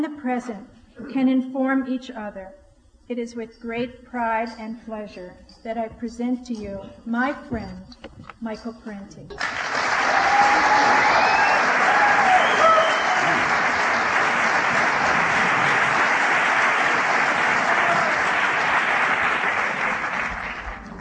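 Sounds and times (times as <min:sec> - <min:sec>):
speech: 0:00.0 - 0:09.8
audience applause: 0:09.4 - 0:20.9.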